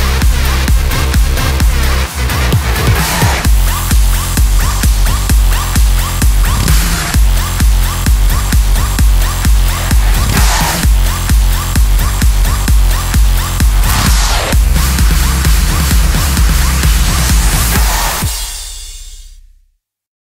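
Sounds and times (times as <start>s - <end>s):
hard techno beat: 0.0s - 19.4s.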